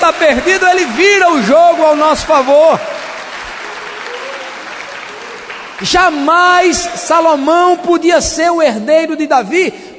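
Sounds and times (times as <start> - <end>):
audience applause: 0.0 - 7.5
speech: 0.1 - 3.0, 5.8 - 9.9.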